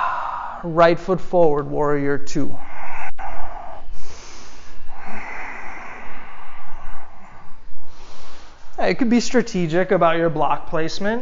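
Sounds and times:
deep breathing during a yoga session: 0.0 - 0.8, 1.8 - 9.0
speech: 0.6 - 2.7, 8.9 - 11.2.

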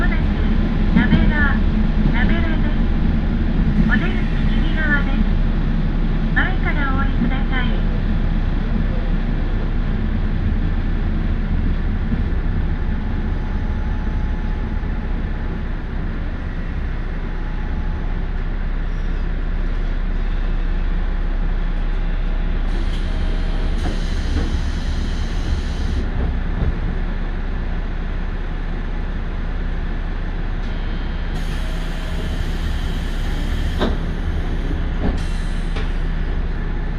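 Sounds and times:
Tarumi Railway train rumble: 0.0 - 36.9.

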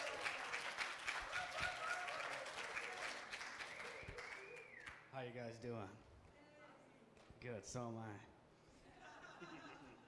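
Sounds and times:
audience applause welcoming a guest speaker: 0.0 - 5.0
speech: 5.2 - 6.1, 7.4 - 8.4, 9.4 - 9.9
laughter: 8.8 - 10.0.

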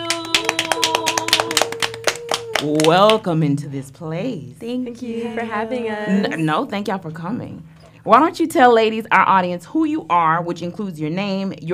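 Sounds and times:
audience applause for the ladies of the NCNW: 0.1 - 3.2
speech: 2.6 - 11.7.

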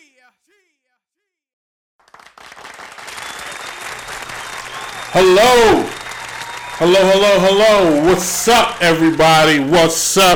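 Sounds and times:
crowd cheering with applause: 2.0 - 10.3
laughter: 4.0 - 10.3
speech: 5.1 - 6.0, 6.8 - 10.3
voice calling out: 5.1 - 6.0, 6.8 - 10.3.

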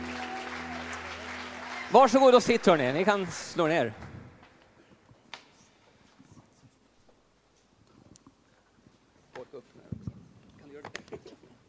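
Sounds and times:
audience applause: 0.0 - 4.0
speech: 1.9 - 4.1.

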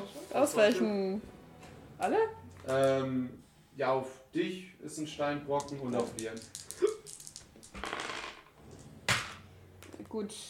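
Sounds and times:
speech: 0.4 - 1.3, 2.0 - 7.0, 10.1 - 10.4
dice for a tabletop role-playing game rattling: 5.5 - 8.8.

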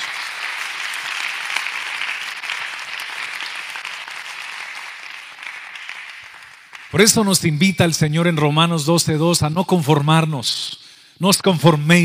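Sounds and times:
audience applause: 0.0 - 7.2
speech: 6.9 - 12.0.

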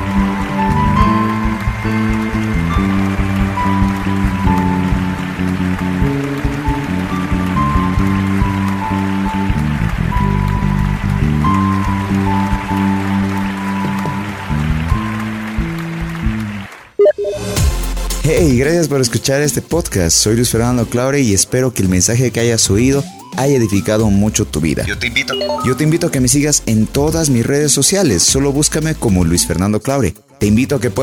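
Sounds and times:
audience applauding: 0.0 - 17.6
speech: 18.5 - 31.0.

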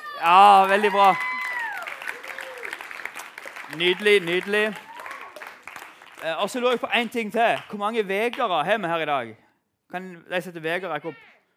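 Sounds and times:
audience applause: 0.0 - 8.5
speech: 0.2 - 1.3, 3.7 - 4.8, 6.2 - 11.3
descending whoop: 0.7 - 2.8.

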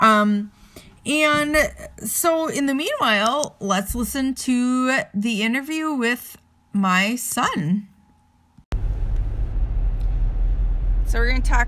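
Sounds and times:
speech: 0.2 - 7.9, 11.1 - 11.6
car driving, interior road noise: 8.7 - 11.6.

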